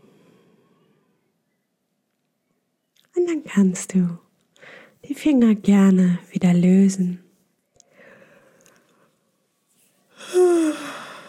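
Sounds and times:
speech: 3.3 - 4.2, 5.1 - 7.2
person yawning: 10.2 - 11.2.

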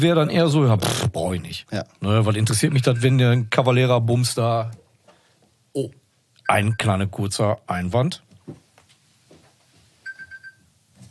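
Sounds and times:
speech: 0.0 - 4.8, 5.8 - 8.6
alarm clock beeping in high-pitched electronic pulses: 10.1 - 10.6.

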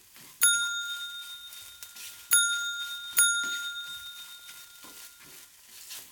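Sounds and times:
shrill electric bell ringing: 0.4 - 5.4.

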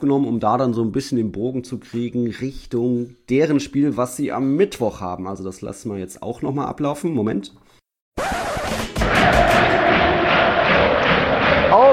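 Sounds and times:
speech: 0.0 - 7.6
football fans cheering in stadium: 9.0 - 11.9.

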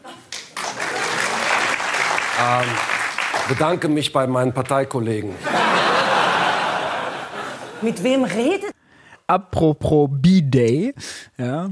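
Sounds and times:
audience applause: 0.4 - 4.0
speech: 2.4 - 5.8, 7.8 - 8.7, 9.3 - 11.7
laughter: 5.4 - 8.0.

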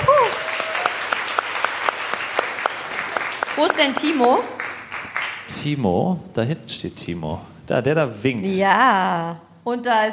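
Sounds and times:
audience applause: 0.0 - 5.5
speech: 3.6 - 4.6, 5.5 - 10.1.

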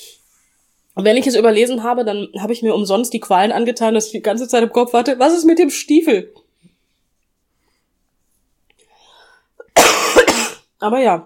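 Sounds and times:
speech: 1.0 - 6.4, 10.8 - 11.2
coughing: 9.6 - 10.7.

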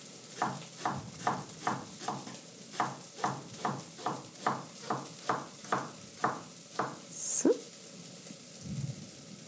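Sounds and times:
speech: 0.4 - 1.0
kitchen knife chopping leek, garlic and mushrooms on a cutting board: 0.4 - 7.0.

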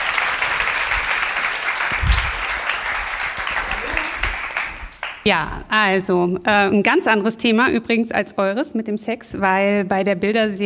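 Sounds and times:
loud audience applause: 0.0 - 5.2
speech: 5.2 - 10.6.

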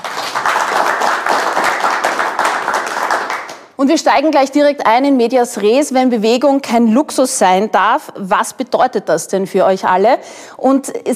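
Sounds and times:
audience applause: 0.0 - 3.6
speech: 3.8 - 11.1.

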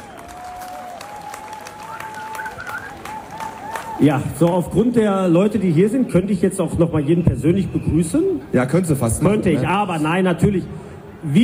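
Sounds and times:
audience applause: 0.0 - 4.2
speech: 4.0 - 11.4.

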